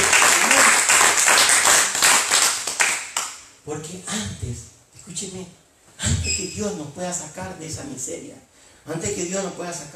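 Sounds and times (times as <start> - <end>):
audience cheering: 0.0 - 1.2
audience applauding: 0.0 - 3.3
speech: 3.7 - 9.9.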